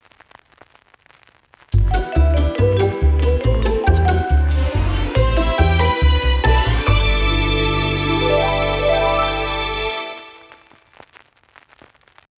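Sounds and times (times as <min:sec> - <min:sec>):
1950s TV logo jingle: 0:01.8 - 0:10.6.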